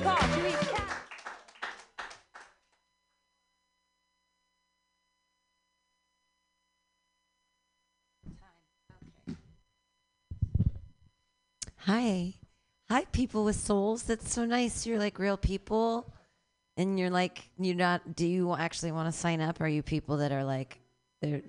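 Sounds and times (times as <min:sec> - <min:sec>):
small audience clapping: 0:00.0 - 0:02.7
speech: 0:11.9 - 0:16.2, 0:16.8 - 0:21.4.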